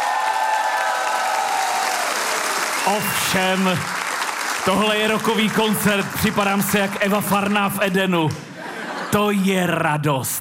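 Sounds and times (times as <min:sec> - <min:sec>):
faint cheering: 0:00.0 - 0:03.4
large indoor audience applause in packed cultural house in Čelákovice: 0:00.0 - 0:09.0
speech: 0:02.8 - 0:04.0, 0:04.6 - 0:08.5, 0:09.1 - 0:10.3
laughter: 0:08.3 - 0:09.8.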